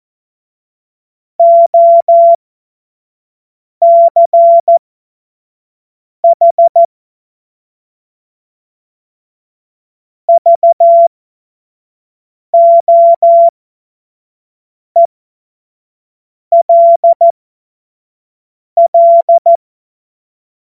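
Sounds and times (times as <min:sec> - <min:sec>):
morse code CW: 0:01.4 - 0:02.4, 0:03.8 - 0:04.7, 0:10.3 - 0:11.1, 0:12.5 - 0:13.5, 0:16.5 - 0:17.3, 0:18.8 - 0:19.6.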